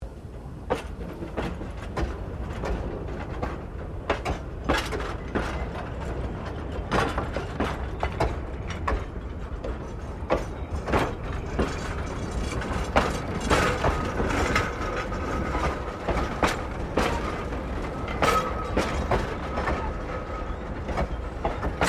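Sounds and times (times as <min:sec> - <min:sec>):
1947 VA1 Class diesel shunter shunting in Tasmania: 0:00.0 - 0:21.8.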